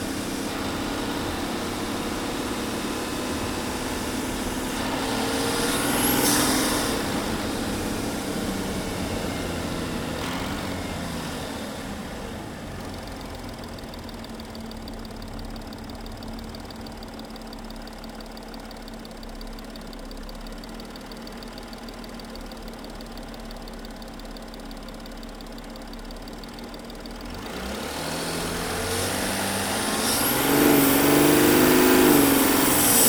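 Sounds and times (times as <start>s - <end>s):
Audi Q7 engine intake during driving with accelerations and decelerations: 0.0s - 16.8s, 27.2s - 33.0s.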